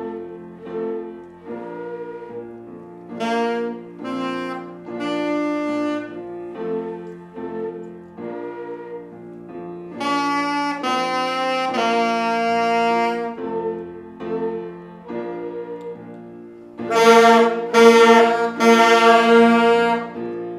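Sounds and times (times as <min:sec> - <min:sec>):
ensemble playing tutti: 0:00.0 - 0:20.5
solo saxophone: 0:00.0 - 0:20.5
transverse flutes: 0:00.0 - 0:20.5.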